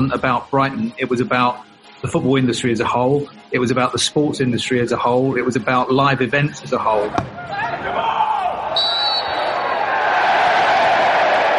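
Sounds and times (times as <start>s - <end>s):
speech: 0.0s - 8.1s
football fans roaring at the Amex Stadium in Brighton: 7.0s - 11.5s
high whistle: 8.7s - 9.7s.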